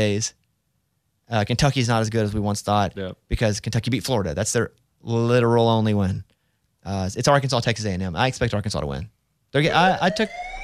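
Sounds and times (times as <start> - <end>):
speech: 0.0 - 0.4, 1.3 - 10.6
alarm siren sound effect: 9.7 - 10.6.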